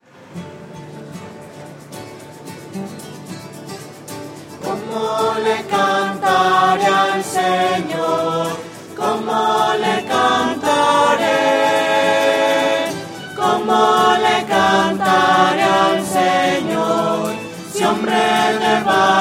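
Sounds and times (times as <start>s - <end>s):
voices: 4.6s - 19.1s.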